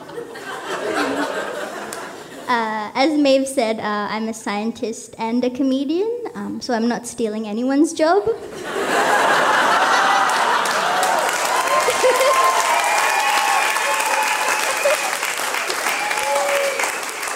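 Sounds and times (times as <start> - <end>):
laughter: 0.0 - 2.5, 8.4 - 16.6
speech: 2.5 - 9.2
audience applause: 9.0 - 17.3.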